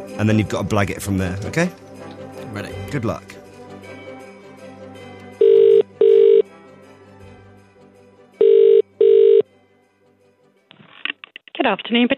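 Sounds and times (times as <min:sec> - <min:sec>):
speech: 0:00.0 - 0:01.8, 0:02.5 - 0:03.4, 0:11.7 - 0:12.1
telephone ringing in classic double-pulse pattern: 0:05.4 - 0:06.5, 0:08.4 - 0:09.4.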